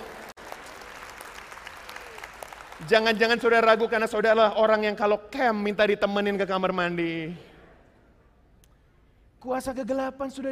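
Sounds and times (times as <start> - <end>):
hesitant applause from audience: 0.0 - 3.8
speech: 2.8 - 7.5, 9.4 - 10.4.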